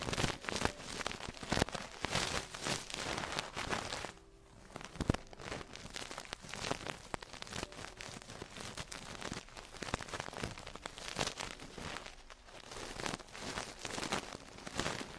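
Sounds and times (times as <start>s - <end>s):
traditional Chinese ear cleaning crackling and scratching: 0.0s - 15.1s.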